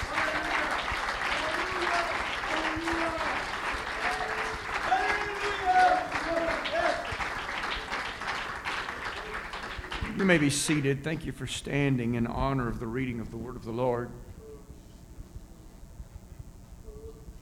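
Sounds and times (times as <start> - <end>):
church congregation clapping their hands to the Lord: 0.0 - 13.8
speech: 10.2 - 14.3.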